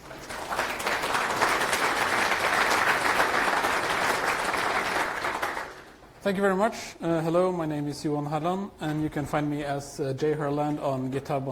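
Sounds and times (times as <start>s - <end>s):
audience applause welcoming a speaker at a software conference: 0.0s - 6.0s
speech: 6.2s - 11.5s.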